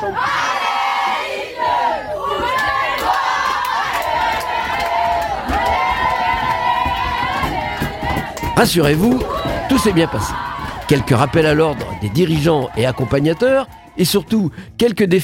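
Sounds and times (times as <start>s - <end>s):
young players cheering and shouting on a boat: 0.0s - 14.5s
sharp claps or bangs: 2.5s - 13.9s
speech: 8.6s - 15.2s.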